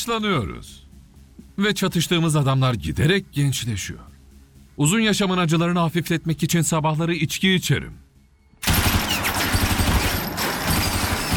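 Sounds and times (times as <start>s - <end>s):
speech: 0.0s - 0.8s, 1.6s - 4.1s, 4.8s - 8.8s
machine gun fire: 8.6s - 11.3s.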